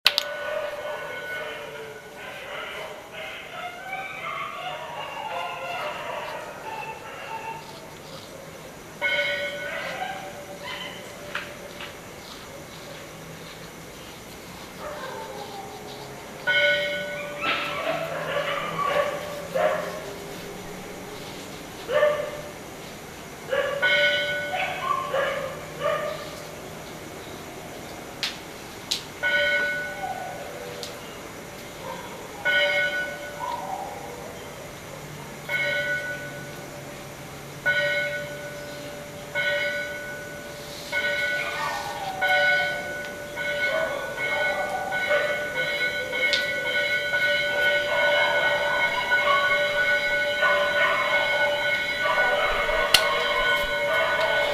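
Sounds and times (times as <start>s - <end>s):
bells: 0.0s - 22.7s, 23.8s - 27.8s, 29.2s - 31.4s, 32.2s - 54.5s
dogs at night: 0.2s - 7.9s, 9.1s - 11.9s, 14.8s - 22.6s, 23.4s - 26.4s, 31.8s - 34.4s, 41.2s - 54.5s.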